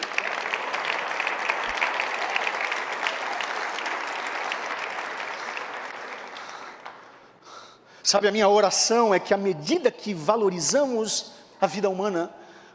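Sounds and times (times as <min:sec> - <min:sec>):
audience applause: 0:00.0 - 0:07.1
speech: 0:08.1 - 0:12.4.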